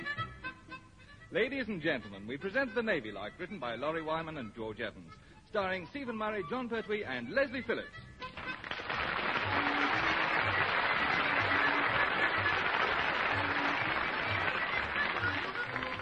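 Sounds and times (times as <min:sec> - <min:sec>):
speech: 0:01.3 - 0:08.1
audience applause: 0:08.4 - 0:16.0.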